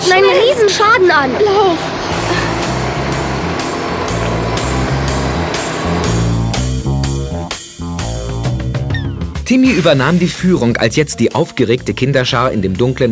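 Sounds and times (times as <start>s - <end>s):
speech: 0.1s - 2.4s, 9.5s - 13.0s
drill roaring: 1.3s - 8.4s.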